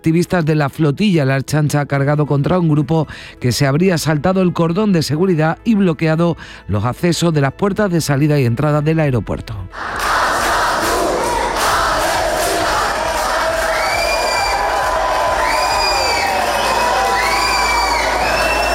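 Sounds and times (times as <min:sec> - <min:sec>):
speech: 0:00.0 - 0:10.0
crowd shouting and cheering during disturbances at Bilbao airport: 0:09.8 - 0:18.7
high cries: 0:13.4 - 0:18.7.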